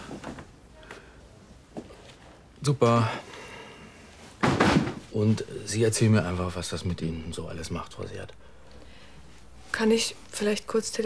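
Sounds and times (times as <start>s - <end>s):
low steady hum: 0.0s - 11.0s
speech: 2.6s - 3.3s, 5.2s - 8.6s, 9.8s - 11.0s
door being closed: 4.4s - 5.1s.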